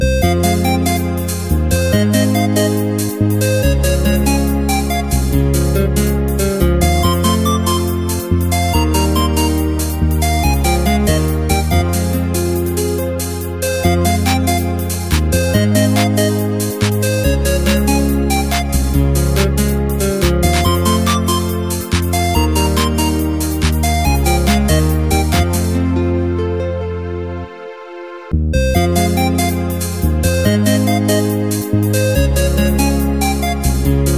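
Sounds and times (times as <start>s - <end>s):
instrumental remix: 0.0s - 34.1s.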